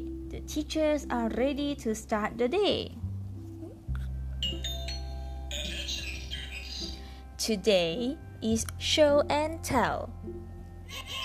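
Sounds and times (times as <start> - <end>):
speech: 0.4 - 3.0, 7.4 - 11.2
school bell ringing: 4.4 - 6.6.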